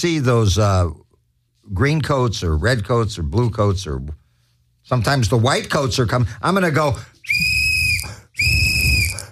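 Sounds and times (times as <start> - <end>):
speech: 0.0 - 1.0, 1.7 - 4.2, 4.8 - 7.6
shrill whistle blasts: 7.2 - 9.2.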